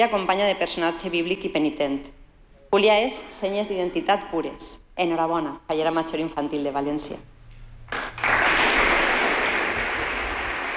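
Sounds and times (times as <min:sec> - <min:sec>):
speech: 0:00.0 - 0:07.3
applause: 0:07.9 - 0:10.7.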